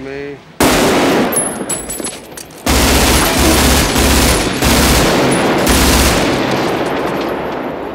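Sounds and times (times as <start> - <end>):
automatic gunfire echoing in a film gunfight scene: 0.6 - 1.4, 2.6 - 7.1.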